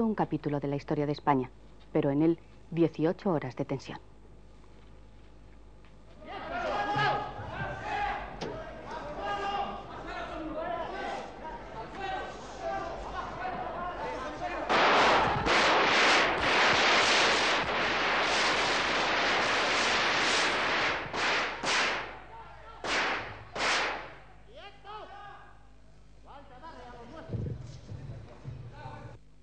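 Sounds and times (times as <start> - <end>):
speech: 0.0 - 4.1
people shouting: 6.2 - 16.4, 21.4 - 25.6
commotion: 6.2 - 24.4
gunshots fired in a crowded hall during the military coup in Spain: 14.6 - 24.3.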